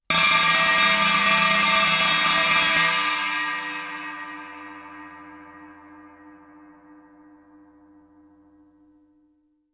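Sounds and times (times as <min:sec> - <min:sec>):
Chinese stick roll on suspended cymbals: 0:00.1 - 0:07.0.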